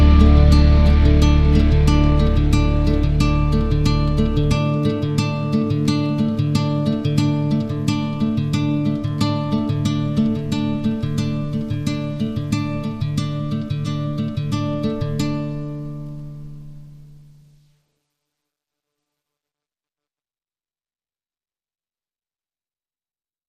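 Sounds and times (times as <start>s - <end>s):
strings: 0.0s - 16.3s
guitars: 0.0s - 17.7s.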